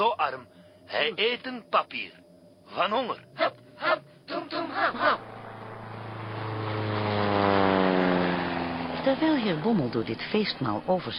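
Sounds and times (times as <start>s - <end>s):
speech: 0.0s - 5.3s, 9.0s - 11.1s
seaplane engine landing: 2.2s - 11.1s.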